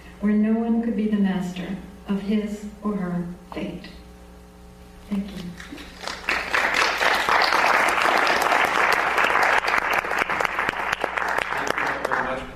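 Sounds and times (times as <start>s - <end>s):
speech: 0.2s - 4.0s, 5.1s - 5.9s
audience clapping: 5.5s - 12.5s.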